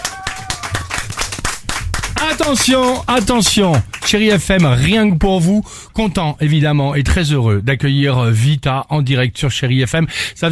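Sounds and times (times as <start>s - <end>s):
audience applause: 0.0s - 5.1s
speech: 2.2s - 10.5s.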